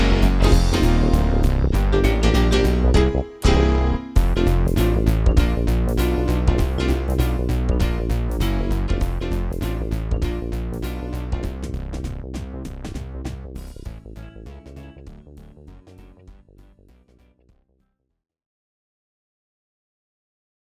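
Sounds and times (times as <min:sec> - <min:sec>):
level complete jingle: 0:00.0 - 0:11.6.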